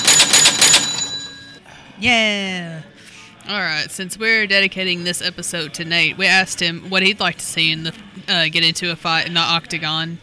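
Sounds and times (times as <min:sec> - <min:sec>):
bell ringing to start a match: 0:00.0 - 0:01.6
speech: 0:02.0 - 0:10.2.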